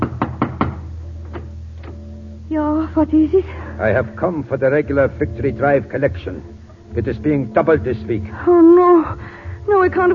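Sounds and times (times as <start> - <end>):
knuckles knocking on a front door: 0.0 - 1.5
speech: 2.5 - 10.1.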